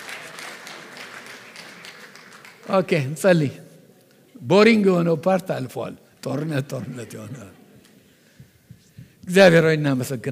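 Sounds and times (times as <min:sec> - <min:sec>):
congregation clapping during an Amharic-language Bible teaching session: 0:00.0 - 0:03.5
speech: 0:02.7 - 0:03.6, 0:04.4 - 0:07.6, 0:09.3 - 0:10.3.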